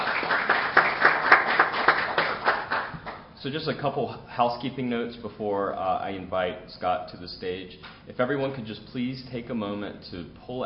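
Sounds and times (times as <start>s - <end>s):
audience applause: 0.0s - 3.2s
speech: 3.4s - 10.6s.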